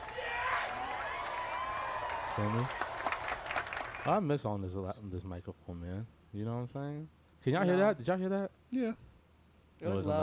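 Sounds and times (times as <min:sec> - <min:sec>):
audience applause: 0:00.0 - 0:04.1
speech: 0:02.4 - 0:02.9, 0:04.0 - 0:09.1, 0:09.8 - 0:10.2.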